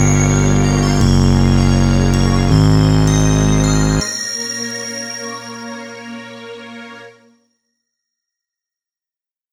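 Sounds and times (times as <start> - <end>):
instrumental music: 0.0 - 7.4.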